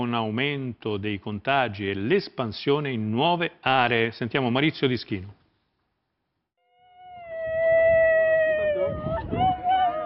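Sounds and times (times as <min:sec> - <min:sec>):
speech: 0:00.0 - 0:05.4
single voice wailing part crying part song: 0:08.0 - 0:10.0.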